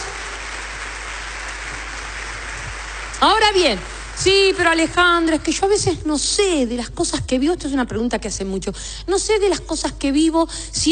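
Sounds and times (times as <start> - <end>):
audience applause: 0.0 - 4.8
speech: 3.2 - 10.8.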